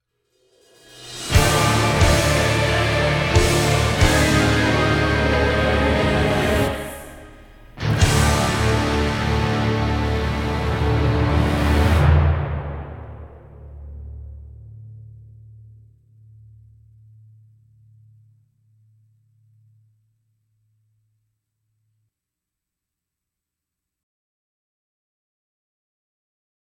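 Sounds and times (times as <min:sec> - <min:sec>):
rock music: 0:01.2 - 0:13.4.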